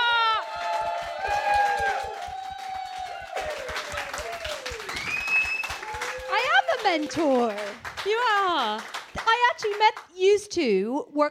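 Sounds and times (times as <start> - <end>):
people cheering: 0.0 - 8.8
audience applauding to welcome a podcast guest: 0.0 - 10.1
speech: 6.9 - 9.0, 9.6 - 11.2.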